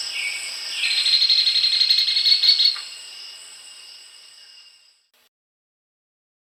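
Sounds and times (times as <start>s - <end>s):
black-and-buff woodpecker: 0.1s - 3.0s.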